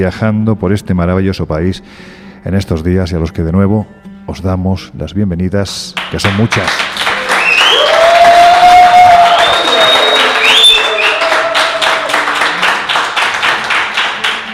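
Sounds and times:
speech: 0:00.0 - 0:07.0
group applauding loudly: 0:06.0 - 0:14.5
whoops and whistle-like cheers: 0:07.1 - 0:12.2.

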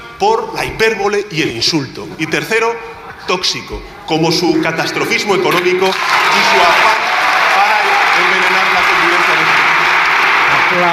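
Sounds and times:
speech: 0:00.2 - 0:07.1, 0:10.8 - 0:10.9
parliamentary applause: 0:05.4 - 0:10.9.

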